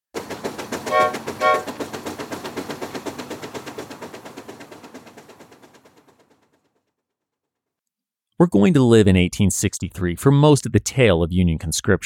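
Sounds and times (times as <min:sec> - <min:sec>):
steam train chugging while departing: 0:00.2 - 0:06.5
steam train whistle blasts: 0:00.8 - 0:01.7
speech: 0:08.4 - 0:12.0.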